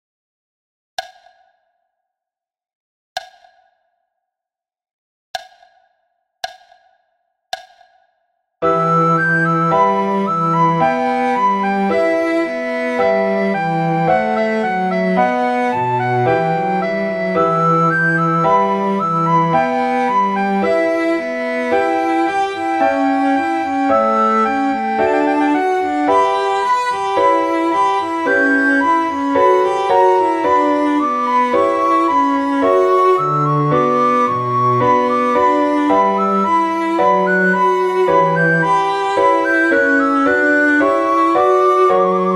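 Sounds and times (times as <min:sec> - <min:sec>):
soprano recorder baroque piece: 0:08.6 - 0:42.3.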